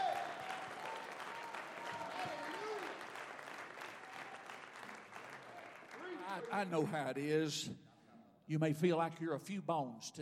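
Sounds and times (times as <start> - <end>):
audience clapping hands: 0.0 - 7.2
speech: 6.4 - 7.8, 8.5 - 10.2.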